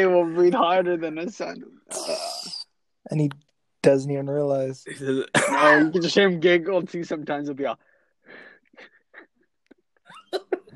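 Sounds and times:
speech: 0.0 - 2.4, 3.0 - 8.9
phlegmy cough: 5.0 - 6.0.

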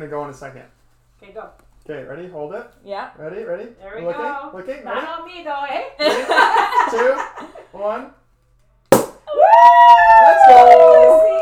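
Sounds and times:
speech: 0.0 - 8.2, 9.4 - 11.4
bottle opening pop: 8.9 - 9.3
high whooping cheer: 9.3 - 11.4.

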